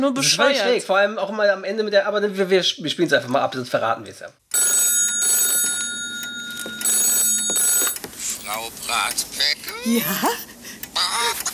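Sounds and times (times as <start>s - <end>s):
speech: 0.0s - 4.4s, 8.9s - 10.5s
old-style telephone bell ringing in a played advert: 4.5s - 8.0s.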